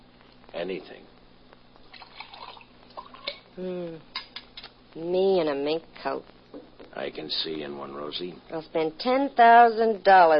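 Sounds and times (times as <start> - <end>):
speech: 0.6 - 1.2, 3.6 - 4.2, 4.9 - 10.3
coffee being poured into a cup: 1.8 - 3.4.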